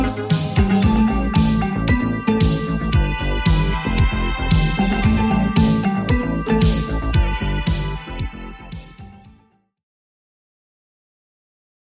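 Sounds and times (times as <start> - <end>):
1980s drum machine beat: 0.0 - 9.3.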